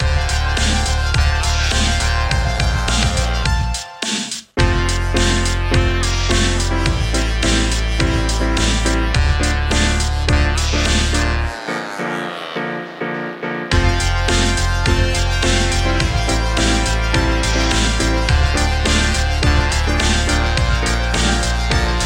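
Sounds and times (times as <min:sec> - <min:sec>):
pop rock music: 0:00.0 - 0:22.0.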